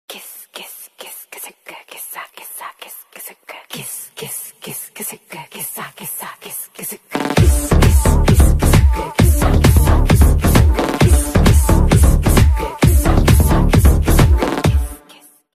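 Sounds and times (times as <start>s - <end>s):
background music ringtone song: 7.4s - 15.4s.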